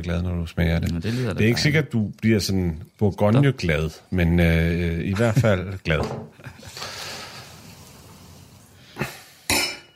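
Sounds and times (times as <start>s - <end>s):
speech: 0.0s - 6.9s
water glasses clinking together: 9.5s - 9.9s.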